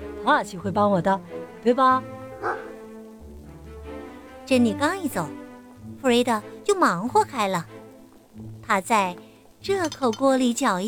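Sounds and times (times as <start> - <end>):
speech: 0.2 - 2.6, 4.5 - 5.4, 6.0 - 7.8, 8.4 - 10.8
sheepdog barking: 2.4 - 2.8.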